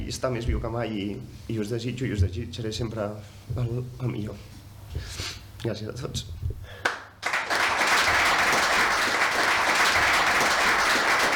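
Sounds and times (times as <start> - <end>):
speech: 0.1 - 6.8
applause in a packed hall of the municipal stadium: 6.8 - 11.3.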